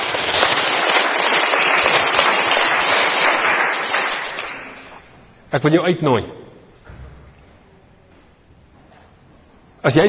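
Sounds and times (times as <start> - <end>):
audience clapping: 0.0 - 5.1
speech: 5.5 - 6.5, 9.8 - 10.0.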